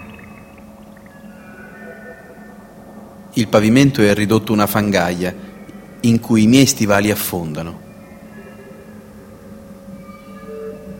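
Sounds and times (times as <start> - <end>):
water flowing among rocks and broken beams: 0.0 - 1.3
speech: 3.4 - 7.8.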